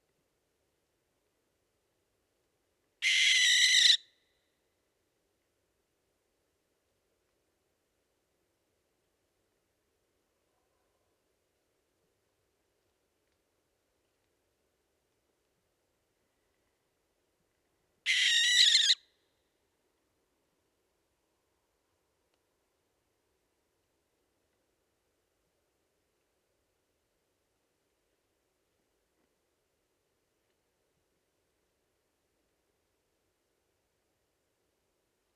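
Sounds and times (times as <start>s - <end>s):
barn owl Tyto alba calling: 3.0s - 4.0s, 18.1s - 19.0s.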